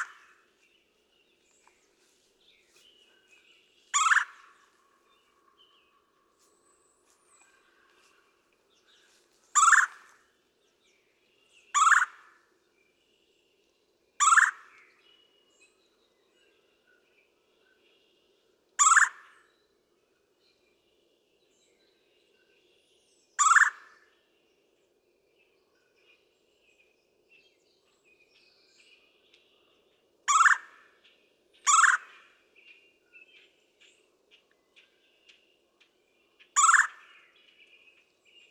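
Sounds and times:
Red-bellied Woodpecker: 0.0 - 0.5, 3.9 - 6.1, 9.5 - 10.2, 11.7 - 12.4, 14.2 - 15.0, 18.8 - 19.5, 23.4 - 24.0, 29.2 - 38.4.

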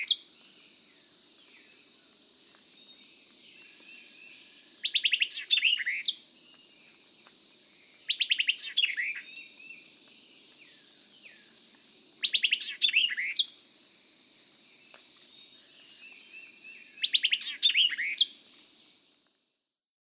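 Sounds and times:
White-eyed Vireo vocalizing: 0.0 - 0.2, 0.9 - 6.6, 8.1 - 11.6, 12.2 - 13.5, 14.5 - 19.0.

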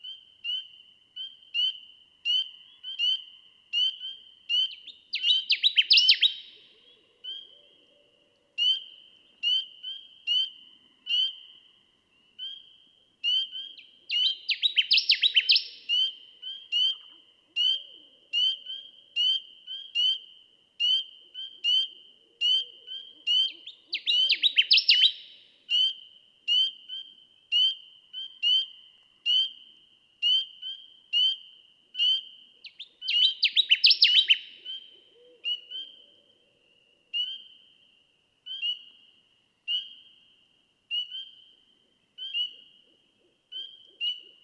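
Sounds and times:
Connecticut warbler song: 0.0 - 44.4.

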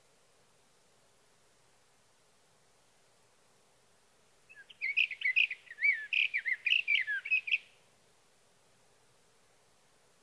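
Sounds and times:
light background hiss: 0.0 - 10.2
sage thrasher warbling song: 4.5 - 7.7.

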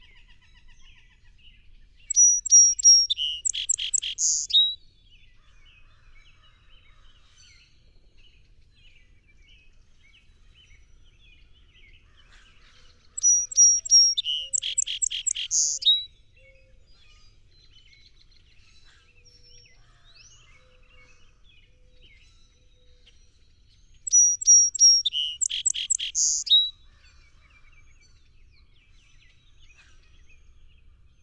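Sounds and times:
song sparrow singing: 2.0 - 4.8, 13.2 - 16.1, 24.0 - 26.7.

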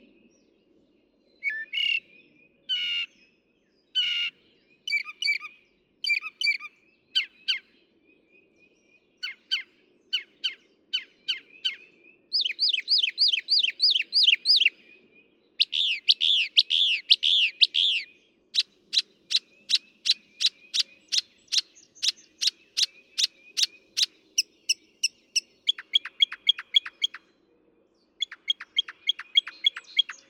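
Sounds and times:
Northern Mockingbird singing: 1.4 - 2.1, 4.9 - 7.7, 9.2 - 14.8, 15.6 - 27.3, 28.2 - 30.2.

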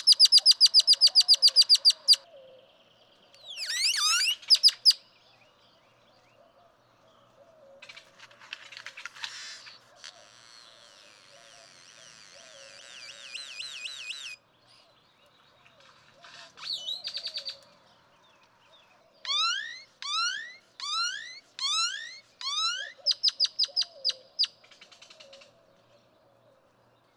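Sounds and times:
Great-tailed Grackle calling: 0.0 - 2.2, 3.5 - 5.0, 7.8 - 14.4, 19.3 - 25.5.

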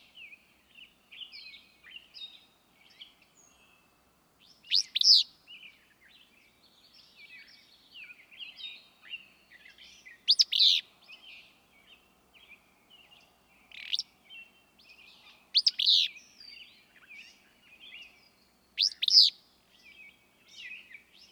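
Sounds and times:
willow flycatcher calling: 10.2 - 10.8, 15.6 - 18.0, 18.8 - 19.4.

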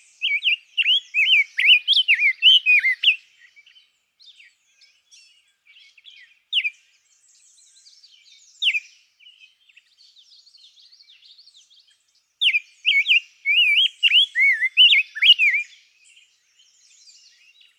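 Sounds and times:
rose-breasted grosbeak whistling and warbling: 0.2 - 3.2, 12.5 - 15.7.

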